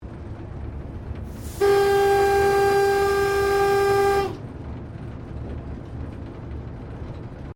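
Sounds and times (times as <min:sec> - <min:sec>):
1951 TGR X Class Tasmanian diesel train cabin whistle: 0:01.4 - 0:04.4.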